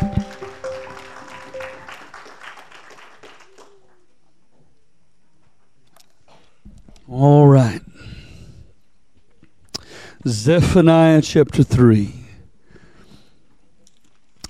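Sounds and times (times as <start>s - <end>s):
audience clapping hands in praise: 0.0s - 4.0s
speech: 10.3s - 12.2s.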